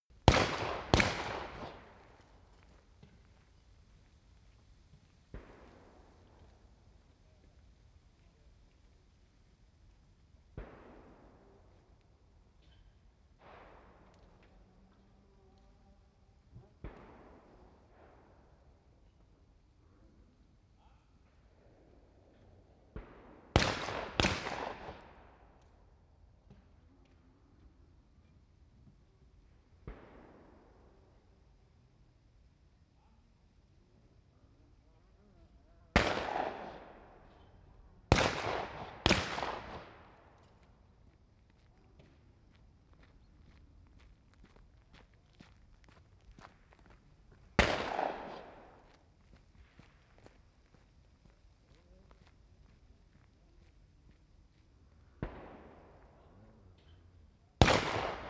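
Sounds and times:
gunshots at a shooting range: 0.2s - 2.3s, 23.0s - 25.4s, 36.0s - 37.4s, 38.1s - 40.4s, 47.6s - 49.0s, 57.6s - 58.2s.

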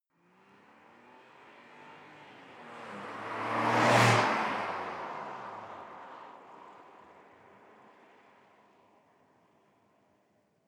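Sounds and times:
sports car passing by fast, exterior: 0.3s - 7.0s.

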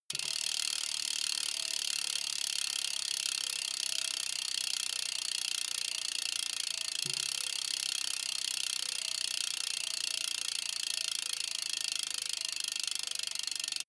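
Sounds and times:
BMX bike freewheel pushed and slowing down: 0.1s - 13.8s.

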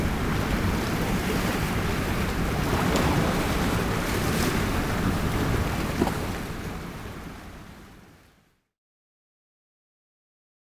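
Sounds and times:
waves breaking: 0.0s - 8.4s.

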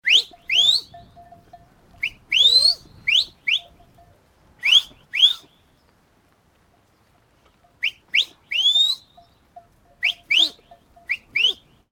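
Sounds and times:
goatherd whistling: 0.0s - 1.0s, 2.0s - 3.7s, 4.6s - 5.5s, 7.8s - 9.2s, 10.0s - 11.7s.

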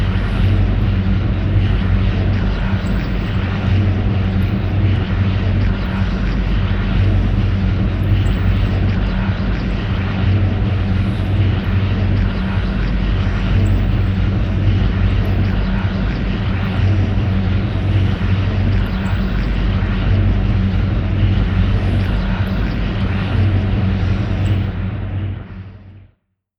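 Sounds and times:
high storm drone: 0.0s - 26.0s.

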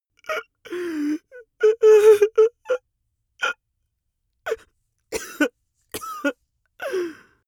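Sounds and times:
man crying: 1.6s - 2.8s.

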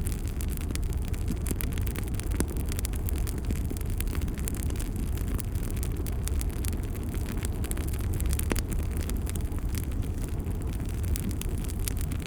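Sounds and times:
medium campfire: 0.0s - 12.2s.

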